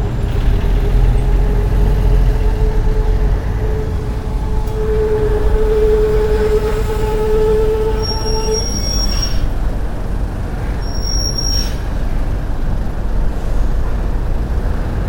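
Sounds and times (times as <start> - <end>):
truck passing: 0.0 - 15.0.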